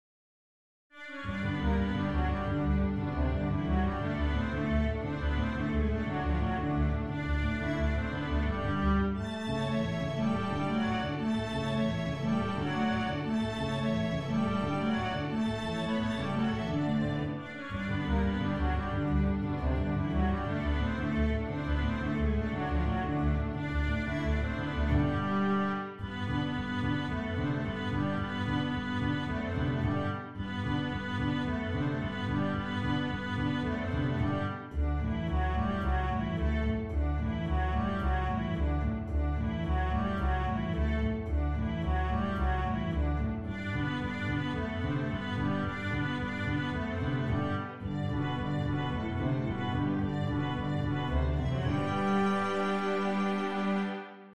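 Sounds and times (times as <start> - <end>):
cello playing a jarabe: 0.9 - 54.3.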